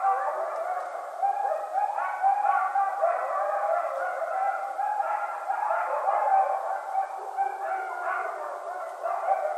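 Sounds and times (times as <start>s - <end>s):
several coyotes howling in a group at night: 0.0s - 9.5s.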